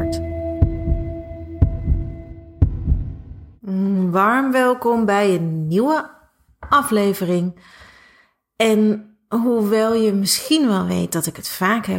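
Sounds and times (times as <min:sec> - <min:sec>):
heartbeat: 0:00.0 - 0:03.6
speech: 0:04.1 - 0:07.8, 0:08.6 - 0:11.9.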